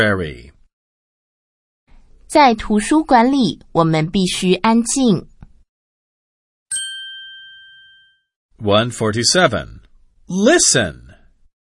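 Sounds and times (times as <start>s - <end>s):
speech: 0.0s - 0.6s, 2.3s - 5.3s, 8.6s - 11.2s
bell ding: 6.7s - 8.3s.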